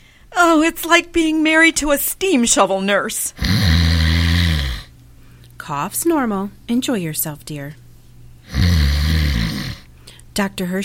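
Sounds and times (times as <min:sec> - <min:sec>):
speech: 0:00.4 - 0:03.4, 0:05.7 - 0:07.8, 0:10.4 - 0:10.8
loud snoring: 0:03.4 - 0:04.9, 0:08.5 - 0:09.9.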